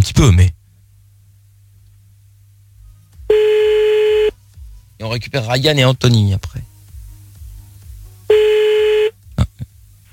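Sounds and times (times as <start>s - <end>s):
speech: 0.0s - 0.6s, 5.0s - 6.7s
telephone tone as a call is placed: 3.3s - 4.3s, 8.3s - 9.2s.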